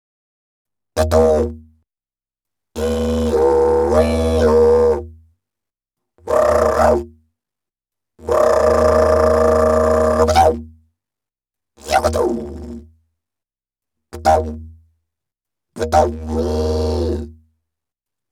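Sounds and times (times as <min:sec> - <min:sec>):
didgeridoo: 0:01.0 - 0:01.6, 0:02.8 - 0:05.1, 0:06.3 - 0:07.1, 0:08.2 - 0:10.6, 0:11.8 - 0:12.8, 0:14.2 - 0:14.7, 0:15.8 - 0:17.3.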